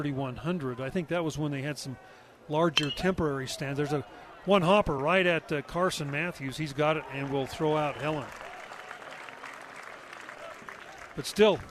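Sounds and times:
speech: 0.0 - 8.5, 11.2 - 11.6
crowd cheering: 2.8 - 11.6
ballpark crowd applauding: 6.0 - 11.6.

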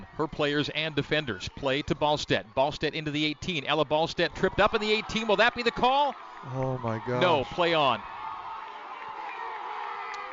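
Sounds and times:
speech: 0.2 - 8.1
football crowd roaring: 4.3 - 10.3.

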